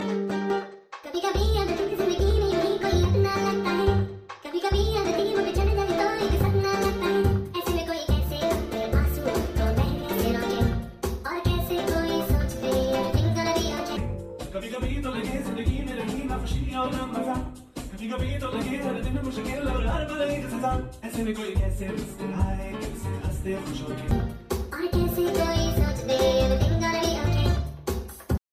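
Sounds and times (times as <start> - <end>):
funny remix ringtone music: 0.0 - 17.8, 18.4 - 28.4.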